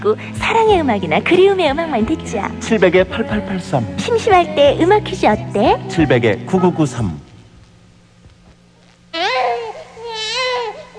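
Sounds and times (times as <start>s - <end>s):
speech: 0.0s - 7.3s
newborn baby crying: 9.1s - 10.9s.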